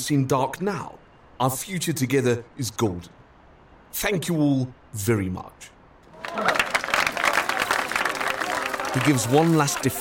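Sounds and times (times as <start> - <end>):
speech: 0.0 - 3.2, 3.9 - 5.7, 8.9 - 9.9
staff applauding a departing party leader: 6.1 - 9.9.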